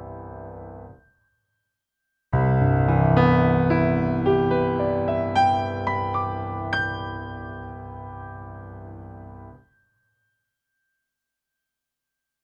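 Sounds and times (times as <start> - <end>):
white grand piano timbre on stage piano, bright mid soft: 0.0 - 1.0, 2.4 - 9.6.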